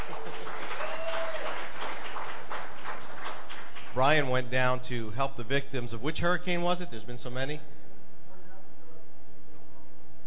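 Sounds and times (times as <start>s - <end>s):
applause from a gathering welcoming back a man from Florida: 0.0s - 4.5s
speech: 4.0s - 7.8s.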